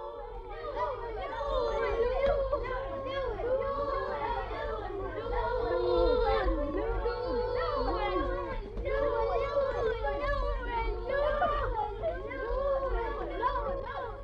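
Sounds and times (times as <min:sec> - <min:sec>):
children loudly shouting a repeated word: 0:00.0 - 0:14.2.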